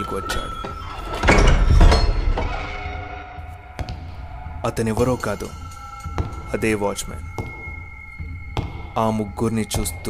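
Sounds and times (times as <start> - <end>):
speech: 0.0 - 1.3, 4.6 - 5.6, 6.5 - 7.4, 9.0 - 10.0
door opening with a loud rumbling scrape: 0.8 - 3.4.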